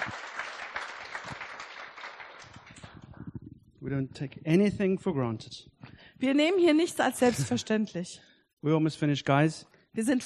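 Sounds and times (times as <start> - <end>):
audience applause: 0.0 - 3.2
speech: 3.8 - 10.2.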